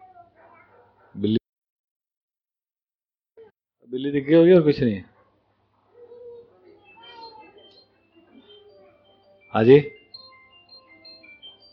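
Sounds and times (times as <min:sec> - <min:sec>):
dog barking: 0:00.1 - 0:01.3, 0:05.1 - 0:05.5
speech: 0:01.2 - 0:01.4, 0:04.0 - 0:05.1, 0:09.6 - 0:10.0.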